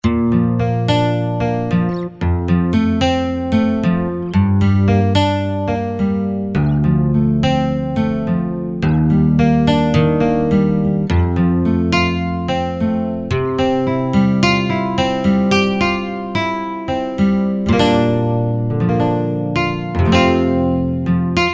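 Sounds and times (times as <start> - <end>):
Roland JV-2080 steel guitar solo: 0.0 - 21.5.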